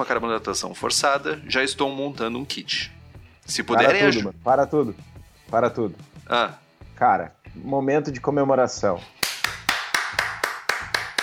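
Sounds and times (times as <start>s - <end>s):
speech: 0.0s - 9.2s
hand clapping: 9.1s - 11.2s.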